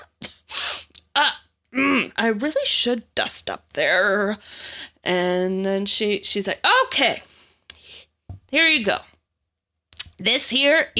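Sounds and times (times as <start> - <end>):
speech: 1.2 - 7.3, 8.5 - 9.1, 10.2 - 10.9
person imitating sneezing: 1.7 - 2.2.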